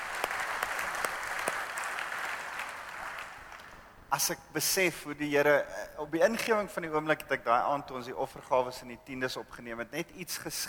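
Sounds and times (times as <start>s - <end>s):
audience clapping hands: 0.0s - 3.9s
speech: 4.1s - 10.6s.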